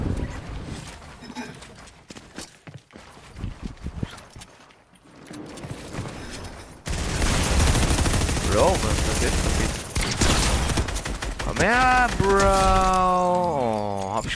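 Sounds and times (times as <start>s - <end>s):
automatic gunfire in the video game Fortnite: 6.8s - 13.1s
people talking: 8.5s - 9.7s, 11.4s - 14.3s.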